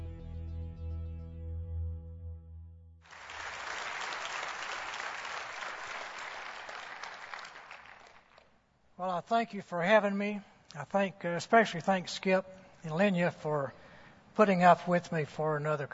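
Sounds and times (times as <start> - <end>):
music: 0.0 - 3.0
audience applause welcoming a doctor at a Calvary church gathering: 3.1 - 8.5
speech: 9.0 - 13.8, 14.4 - 15.9.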